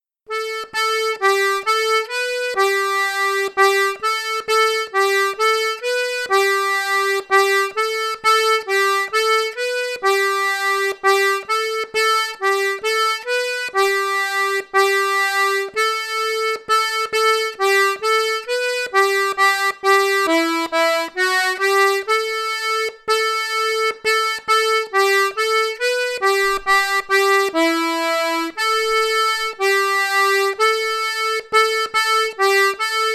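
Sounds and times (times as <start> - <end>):
slow ronde de Loudéac dance tune: 0.3 - 33.1.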